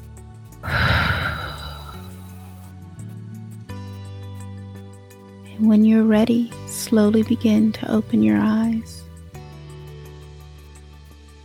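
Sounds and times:
soft sustained music tones: 0:00.0 - 0:11.4
slow deep exhale at the close of a guided meditation: 0:00.6 - 0:02.7
speech: 0:05.6 - 0:09.0.

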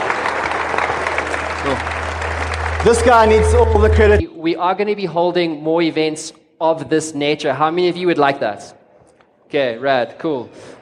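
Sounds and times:
audience round of applause: 0:00.0 - 0:04.2
speech: 0:01.6 - 0:02.0, 0:02.8 - 0:08.8, 0:09.5 - 0:10.8.

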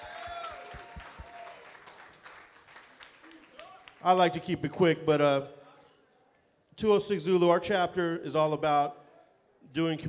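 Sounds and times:
audience applause: 0:00.0 - 0:04.0
speech: 0:04.0 - 0:05.6, 0:06.8 - 0:09.0, 0:09.7 - 0:10.0.

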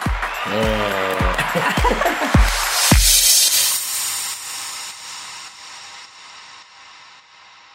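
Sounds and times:
applause: 0:00.0 - 0:03.3
speech: 0:00.4 - 0:00.8
laughter: 0:00.4 - 0:02.6.

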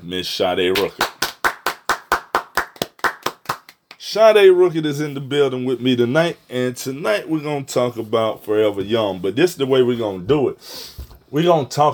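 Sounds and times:
speech: 0:00.1 - 0:01.1, 0:04.1 - 0:11.9
hand clapping applause: 0:00.7 - 0:04.2.

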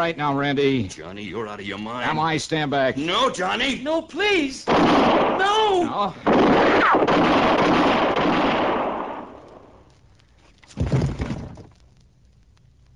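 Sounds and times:
speech: 0:00.0 - 0:07.8
gunshots: 0:04.7 - 0:09.7.

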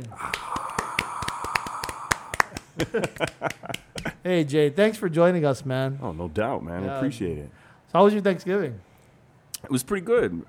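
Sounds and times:
speech: 0:00.0 - 0:00.6, 0:02.8 - 0:08.9, 0:09.6 - 0:10.4
round of applause: 0:00.1 - 0:03.8
laughter: 0:02.5 - 0:04.2.

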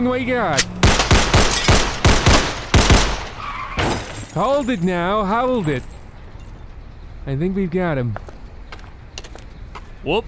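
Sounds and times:
speech: 0:00.0 - 0:00.8, 0:04.4 - 0:05.9, 0:07.2 - 0:08.3, 0:10.0 - 0:10.2
gunshots in an audio drama: 0:00.6 - 0:04.0.

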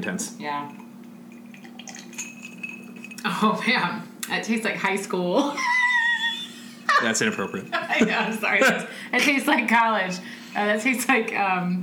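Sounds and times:
speech: 0:00.0 - 0:00.8, 0:03.2 - 0:05.8, 0:07.0 - 0:11.8
glasses clinking together: 0:00.6 - 0:03.8, 0:06.9 - 0:08.8.

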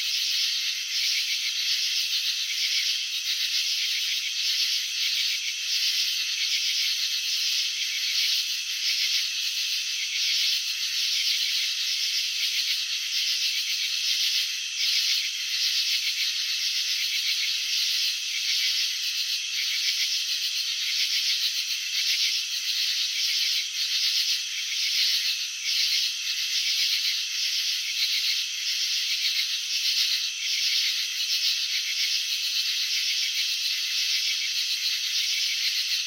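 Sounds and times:
cricket chirping in pulsed bursts: 0:00.0 - 0:36.0.

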